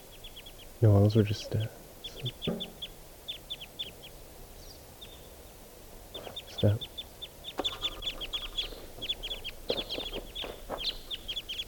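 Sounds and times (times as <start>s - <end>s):
wild bird calling in high-pitched chirps: 0.0s - 11.6s
speech: 0.8s - 2.8s, 6.6s - 6.9s.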